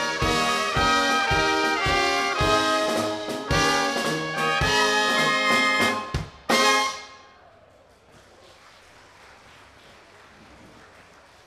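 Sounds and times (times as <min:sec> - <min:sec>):
polka music: 0:00.0 - 0:07.2.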